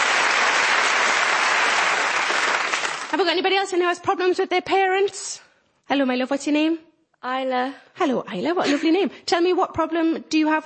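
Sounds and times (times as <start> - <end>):
audience applauding: 0.0 - 3.2
speech: 3.1 - 10.6.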